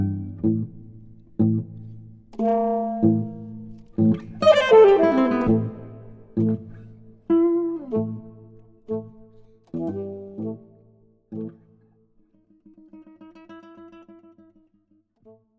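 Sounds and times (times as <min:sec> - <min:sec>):
alto saxophone and guitar sonata: 0:02.4 - 0:10.5.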